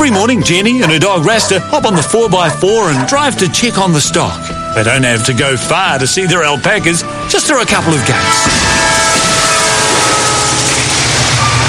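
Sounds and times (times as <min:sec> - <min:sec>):
speech: 0:00.1 - 0:09.2
loud passing train rumbling: 0:07.9 - 0:11.6.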